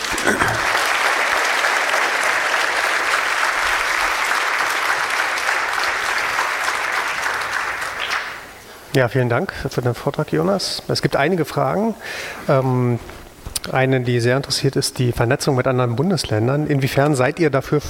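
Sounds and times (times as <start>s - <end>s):
audience applause: 0.0s - 8.6s
speech: 9.0s - 17.8s.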